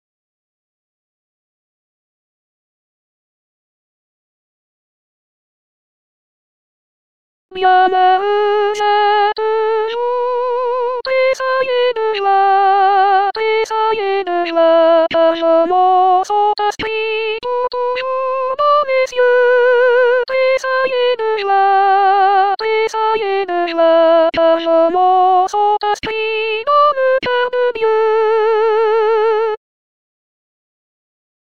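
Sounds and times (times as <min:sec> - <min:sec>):
soprano singing: 0:07.5 - 0:29.6.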